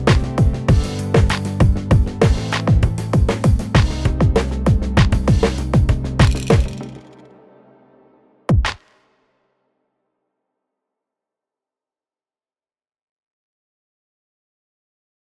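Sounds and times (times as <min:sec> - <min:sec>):
instrumental music: 0:00.0 - 0:09.0.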